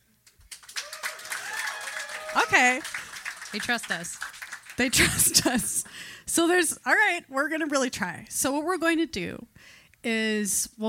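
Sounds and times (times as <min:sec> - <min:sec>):
audience applause: 0:00.4 - 0:05.5
whooping and cheering: 0:00.7 - 0:03.4
speech: 0:02.4 - 0:10.8.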